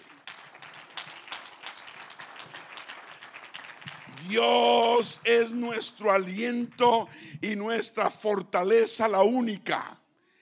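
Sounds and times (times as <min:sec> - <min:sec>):
crowd applauding: 0:00.0 - 0:07.1
speech: 0:04.2 - 0:10.0.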